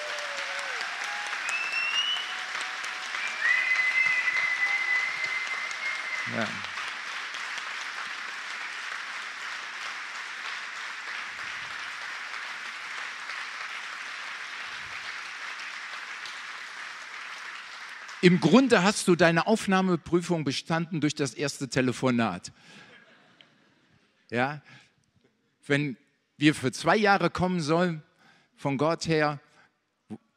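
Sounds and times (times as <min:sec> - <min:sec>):
audience applause: 0:00.0 - 0:18.9
whistle-like tones: 0:01.4 - 0:02.3, 0:03.2 - 0:06.6
speech: 0:06.3 - 0:06.7, 0:18.2 - 0:22.9, 0:24.3 - 0:24.8, 0:25.6 - 0:29.4, 0:30.1 - 0:30.3.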